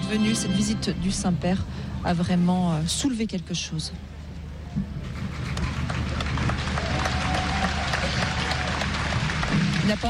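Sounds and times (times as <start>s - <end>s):
speech: 0.1s - 4.1s, 9.9s - 10.0s
crowd applauding the pope: 5.3s - 10.0s.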